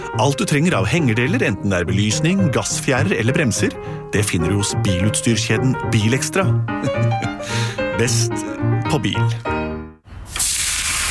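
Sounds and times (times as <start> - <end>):
speech: 0.2 - 9.6
meat sizzling on a grill: 10.3 - 11.0.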